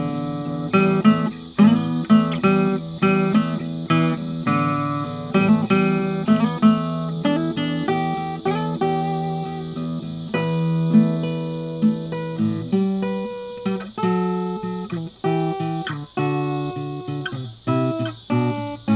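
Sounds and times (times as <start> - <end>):
blues music: 0.0 - 18.9
cicadas: 0.0 - 18.9.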